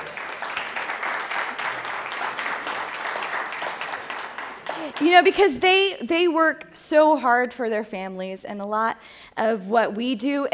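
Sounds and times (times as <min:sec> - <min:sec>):
audience clapping: 0:00.0 - 0:05.9
speech: 0:05.0 - 0:10.5.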